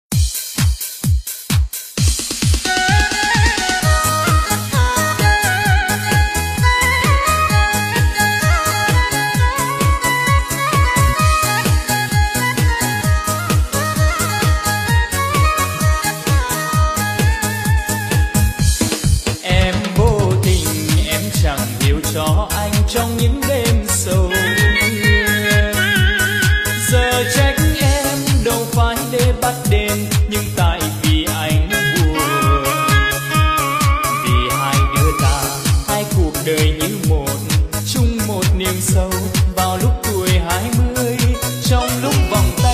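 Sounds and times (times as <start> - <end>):
Ha Tay countryside live bolero music: 1.6 - 42.7.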